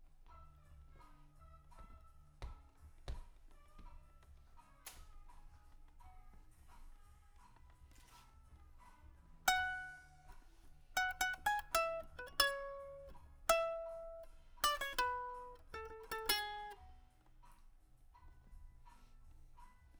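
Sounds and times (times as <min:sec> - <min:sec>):
guitar: 0:09.5 - 0:17.1.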